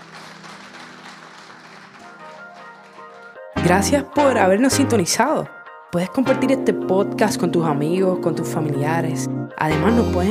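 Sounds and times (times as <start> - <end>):
audience applause: 0.0 - 3.6
speech: 3.6 - 10.2.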